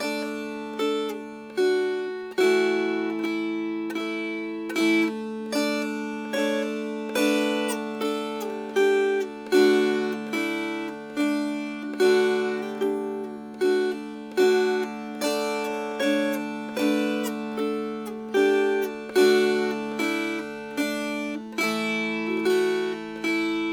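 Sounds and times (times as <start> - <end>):
dulcimer melody: 0.0 - 23.7.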